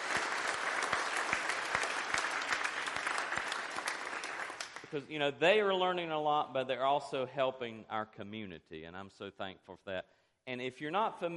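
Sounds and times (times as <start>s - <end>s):
audience applause: 0.0s - 4.9s
speech: 4.9s - 11.3s.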